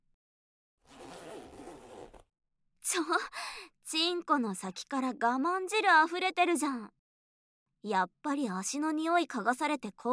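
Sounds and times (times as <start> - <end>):
trouser zipper being pulled down: 0.8 - 2.3
speech: 2.9 - 7.0, 7.8 - 10.1.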